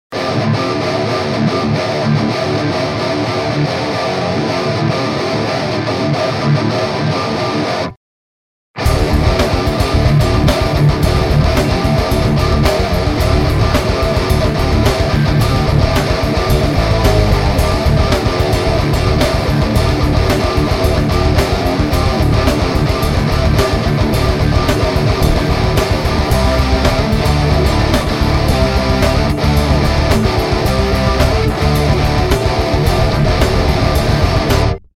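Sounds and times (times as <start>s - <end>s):
Les Paul electric guitar through Mercury EL34 amp: 0.2s - 8.0s, 8.8s - 34.9s.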